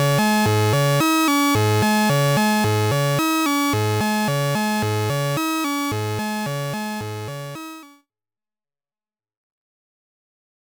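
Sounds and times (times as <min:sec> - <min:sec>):
synthesizer VCO hard and soft synced to VCO2 with sawtooth modulator: 0:00.0 - 0:07.9.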